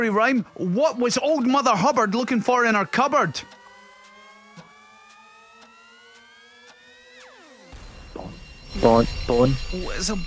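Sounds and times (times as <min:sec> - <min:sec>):
speech: 0:00.0 - 0:03.6, 0:08.8 - 0:10.2
regular ticks: 0:00.1 - 0:07.7
quiz time-up buzzer: 0:03.4 - 0:10.2.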